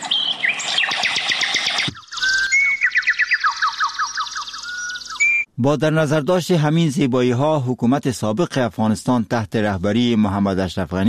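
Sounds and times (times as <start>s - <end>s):
birds singing: 0.0s - 5.5s
speech: 5.6s - 11.0s.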